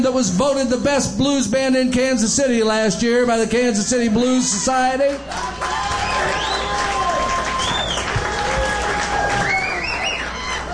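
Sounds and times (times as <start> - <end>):
speech: 0.0 - 6.4
audience cheering: 4.4 - 10.7
audience applause: 5.1 - 10.7.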